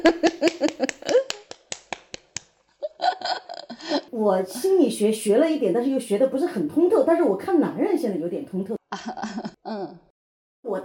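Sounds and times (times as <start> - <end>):
speech: 0.0 - 0.3, 4.2 - 10.8
laughter: 0.0 - 1.4, 2.8 - 4.0, 9.0 - 9.8
hand clapping: 0.2 - 2.6.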